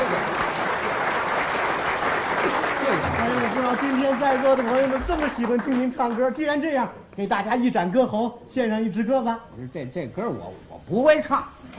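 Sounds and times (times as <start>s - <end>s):
audience applause at a live comedy stage show: 0.0s - 6.4s
speech: 3.7s - 11.7s.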